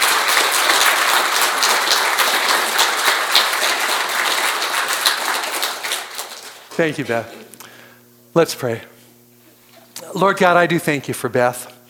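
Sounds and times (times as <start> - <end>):
applause: 0.0 - 7.0
speech: 6.8 - 7.4, 8.4 - 8.9, 10.1 - 11.7.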